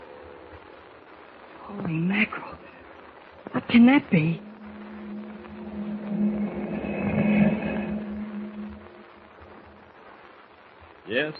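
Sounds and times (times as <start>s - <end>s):
speech: 1.7s - 2.8s, 3.5s - 4.5s, 11.1s - 11.3s
strange moan in the darkness: 3.8s - 10.0s.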